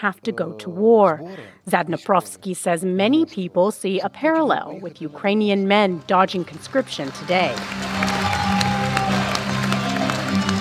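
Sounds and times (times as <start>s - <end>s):
speech: 0.0s - 8.0s
theater audience applause: 6.4s - 10.5s.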